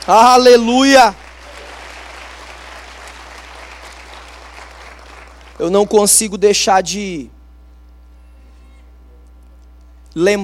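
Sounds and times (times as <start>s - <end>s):
audience applause: 0.0s - 6.0s
speech: 0.1s - 1.2s, 5.6s - 7.4s, 10.1s - 10.4s.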